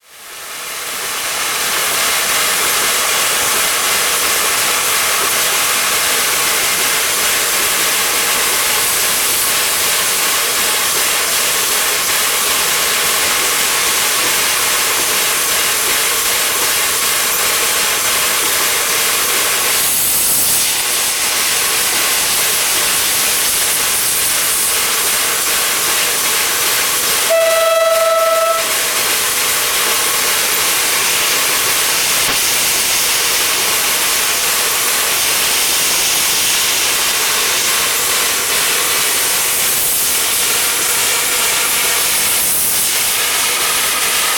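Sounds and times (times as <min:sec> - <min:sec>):
steam locomotive in China: 0:00.0 - 0:44.3.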